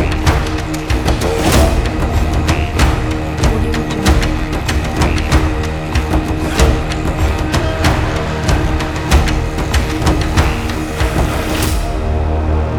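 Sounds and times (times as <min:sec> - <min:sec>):
viking drums: 0:00.0 - 0:12.6.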